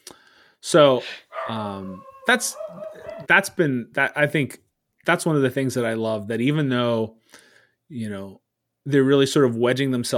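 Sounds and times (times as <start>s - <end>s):
speech: 0.6s - 10.1s
dog barking and whimpering in the room: 1.3s - 3.3s.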